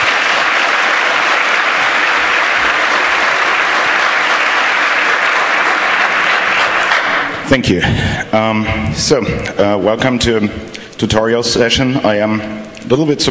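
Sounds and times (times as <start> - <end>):
audience applause: 0.0 - 7.4
speech: 7.5 - 13.2.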